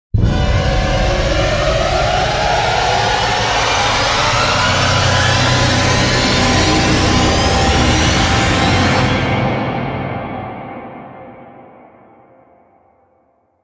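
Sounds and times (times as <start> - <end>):
orchestral riser: 0.2 - 10.2.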